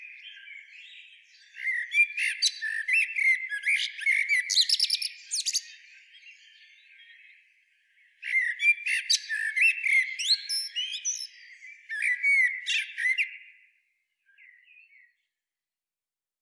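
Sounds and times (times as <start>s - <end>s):
Eurasian blackbird twittering: 0.2s - 6.6s, 8.2s - 13.3s.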